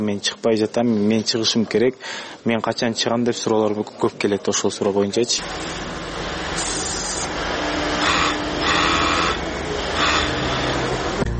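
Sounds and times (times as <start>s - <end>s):
speech: 0.0s - 6.0s
sewing workshop machinery humming and rattling in Bishkek: 5.4s - 11.2s.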